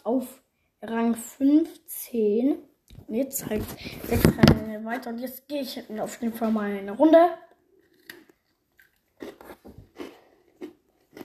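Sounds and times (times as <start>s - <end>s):
speech: 0.2s - 7.4s
chocolate biscuit crunching and chewing: 7.7s - 11.2s.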